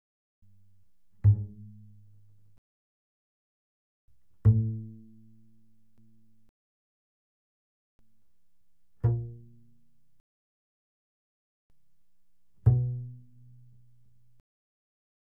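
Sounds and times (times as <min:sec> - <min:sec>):
double bass pizzicato fortissimo on the A string: 0:00.5 - 0:02.6, 0:04.3 - 0:06.5, 0:08.9 - 0:10.1, 0:12.4 - 0:14.4.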